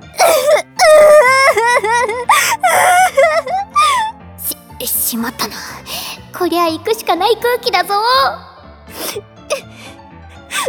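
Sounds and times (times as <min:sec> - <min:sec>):
person wailing and sobbing: 0:00.0 - 0:04.1, 0:08.9 - 0:09.9
speech: 0:05.1 - 0:09.3.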